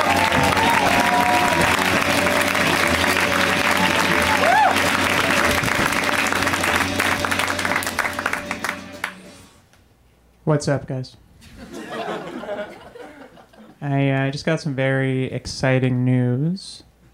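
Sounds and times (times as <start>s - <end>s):
crowd applause at a comedy show greeting a comedian: 0.0s - 9.4s
speech: 10.5s - 11.6s, 13.8s - 16.9s
laughter: 11.4s - 13.8s.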